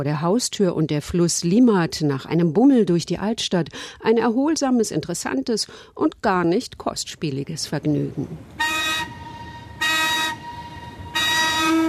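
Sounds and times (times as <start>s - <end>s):
speech: 0.0s - 9.1s
old paddle steamer whistle blasts: 8.6s - 11.8s.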